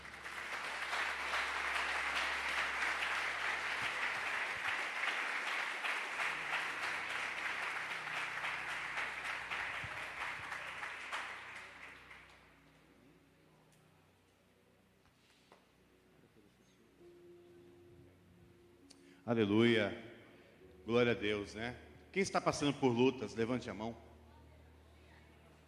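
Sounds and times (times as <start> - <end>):
audience applause: 0.0 - 12.5
speech: 19.3 - 20.0, 20.9 - 24.1.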